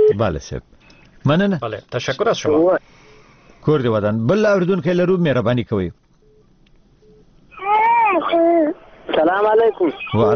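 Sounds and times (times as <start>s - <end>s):
speech: 0.1s - 6.0s, 9.2s - 10.3s
infant crying while a caller is on the radio line: 7.5s - 8.8s.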